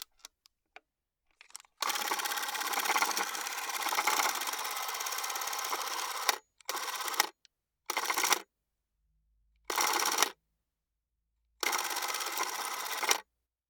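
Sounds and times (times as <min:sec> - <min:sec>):
mechanical wind-up mechanism: 0:01.8 - 0:07.3, 0:07.9 - 0:08.4, 0:09.7 - 0:10.4, 0:11.6 - 0:13.2.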